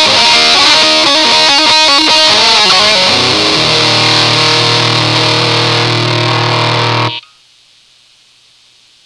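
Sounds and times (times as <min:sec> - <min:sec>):
guitar through Tonebender Pro MKII fuzz: 0:00.0 - 0:07.2.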